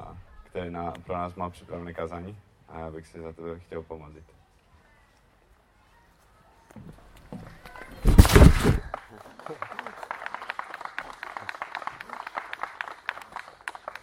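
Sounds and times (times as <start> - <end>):
speech: 0.5 - 4.4, 6.7 - 7.0
audience clapping: 8.7 - 14.0.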